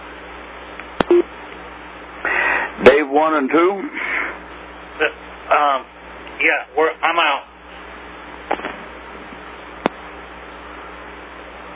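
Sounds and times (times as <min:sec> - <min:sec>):
phone keypad beep on conference call: 0:01.0 - 0:01.3
faint phone line hiss: 0:01.1 - 0:01.3
speech: 0:03.1 - 0:04.1, 0:05.0 - 0:07.5, 0:08.5 - 0:08.9.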